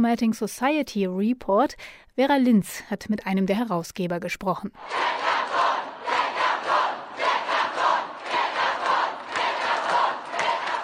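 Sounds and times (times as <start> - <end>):
speech: 0.0 - 5.7
hundreds of students chanting on the streets of London: 4.8 - 10.8.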